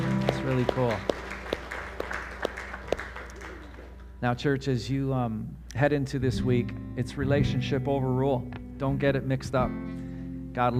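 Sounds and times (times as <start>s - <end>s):
audience applauding: 0.0s - 4.1s
speech: 0.4s - 1.2s, 4.2s - 9.9s, 10.6s - 10.7s.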